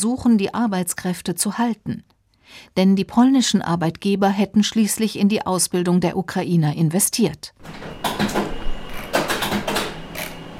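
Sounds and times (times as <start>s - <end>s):
speech: 0.0s - 8.5s
printer printing out a dataset in a small university office: 7.6s - 10.5s.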